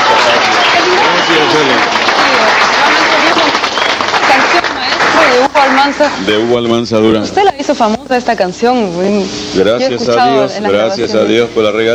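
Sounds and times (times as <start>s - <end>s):
cheering voices: 0.0s - 4.4s
audience applause: 0.0s - 6.2s
speech: 5.6s - 11.9s.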